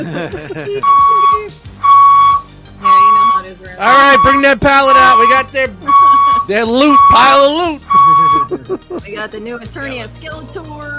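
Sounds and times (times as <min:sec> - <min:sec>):
laughter: 0:00.0 - 0:01.5, 0:05.8 - 0:06.5, 0:08.0 - 0:09.5
speech: 0:00.0 - 0:01.5, 0:03.5 - 0:05.9, 0:06.5 - 0:07.9, 0:08.7 - 0:10.9
truck reversing beeper: 0:00.8 - 0:08.6.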